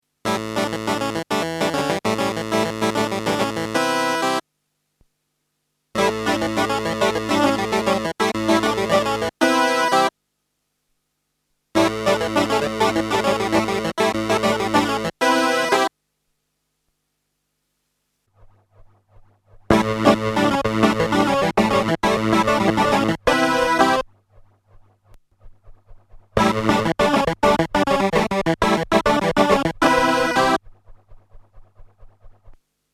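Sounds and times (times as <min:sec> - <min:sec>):
Juno60 stereo clavinet: 0:00.3 - 0:04.4, 0:06.0 - 0:10.1, 0:11.8 - 0:15.9, 0:19.7 - 0:24.0, 0:26.4 - 0:30.6.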